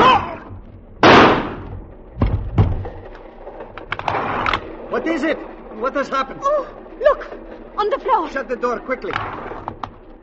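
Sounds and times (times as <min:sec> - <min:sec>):
gunshots fired inside a compartment: 0:01.0 - 0:01.8
faint clicks and rattles: 0:01.9 - 0:10.2
speech: 0:05.0 - 0:09.5.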